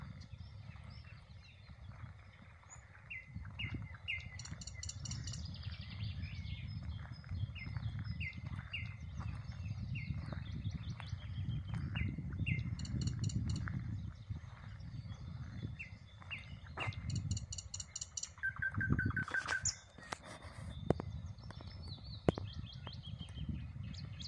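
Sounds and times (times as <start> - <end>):
common nightingale song: 0.0 - 24.2.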